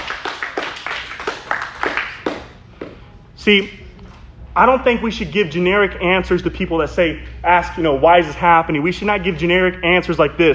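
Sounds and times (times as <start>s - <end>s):
audience clapping: 0.0s - 2.6s
speech: 3.4s - 3.8s, 4.6s - 10.5s.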